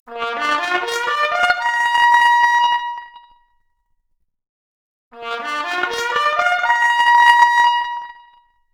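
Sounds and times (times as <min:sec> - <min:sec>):
trumpet arpeggio: 0:00.1 - 0:02.6, 0:05.2 - 0:08.1.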